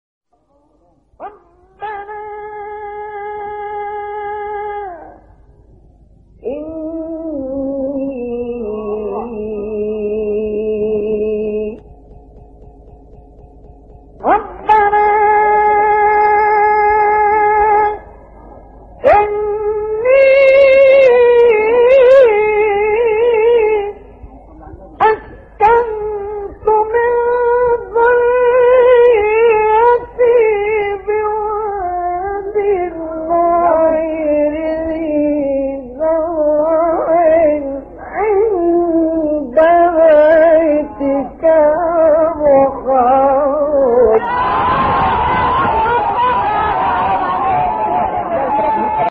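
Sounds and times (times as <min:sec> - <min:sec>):
recitation of a religious verse: 0:00.4 - 0:05.4, 0:06.4 - 0:49.0
laughter: 0:44.3 - 0:49.0.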